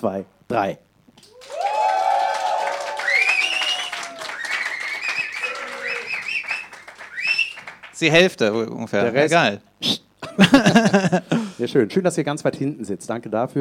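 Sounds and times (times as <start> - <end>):
speech: 0.0 - 1.6, 8.0 - 13.5
whoops and high shouts: 1.2 - 6.6
live audience cheering and applauding: 1.2 - 8.1
laughter: 3.5 - 6.6, 10.2 - 11.6.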